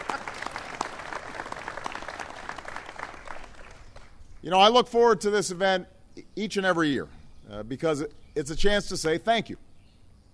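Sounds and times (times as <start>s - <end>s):
audience applause: 0.0s - 4.1s
speech: 4.4s - 9.6s.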